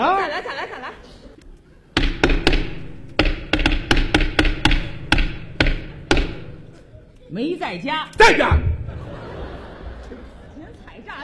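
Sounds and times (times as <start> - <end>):
laughter: 0.0 - 1.8, 8.6 - 11.2
knocking on a door: 2.0 - 6.8
speech: 7.4 - 8.7.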